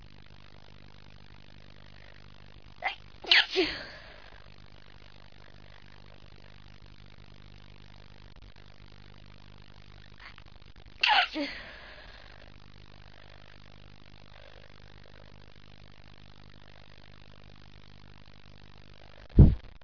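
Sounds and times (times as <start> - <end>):
woman stifling: 2.8 - 4.4, 11.0 - 12.2.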